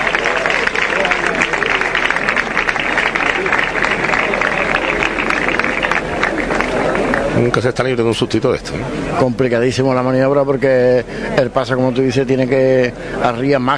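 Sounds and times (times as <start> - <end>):
applause after lifting a procession float: 0.0 - 8.0
speech: 7.4 - 13.7.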